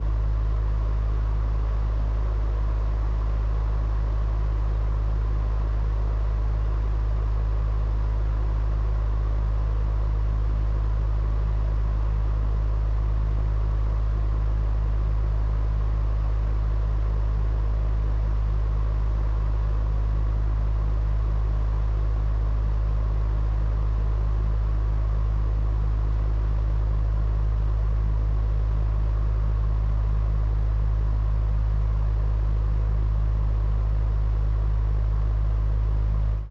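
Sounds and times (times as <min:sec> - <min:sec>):
fan: 0:00.0 - 0:36.4.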